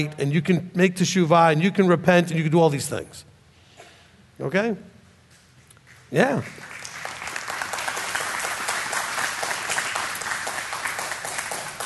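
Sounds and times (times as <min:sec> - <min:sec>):
speech: 0:00.0 - 0:03.3, 0:04.4 - 0:04.9, 0:06.1 - 0:06.7
audience clapping: 0:05.9 - 0:11.8.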